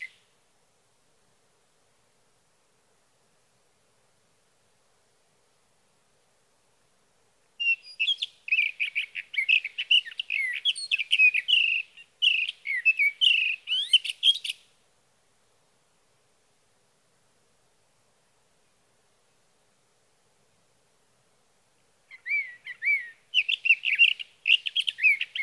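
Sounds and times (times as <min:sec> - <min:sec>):
Sage Thrasher singing through the night: 0:07.6 - 0:14.6, 0:22.1 - 0:25.4.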